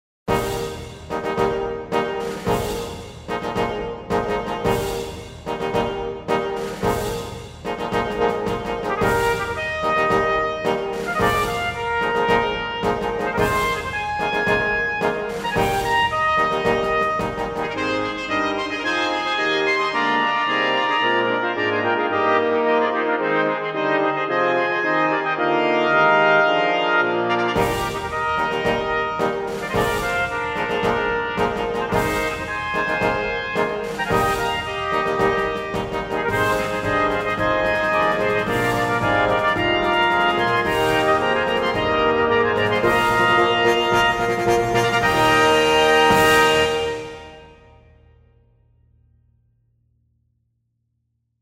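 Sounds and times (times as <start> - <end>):
fanfare: 0.3 - 48.0.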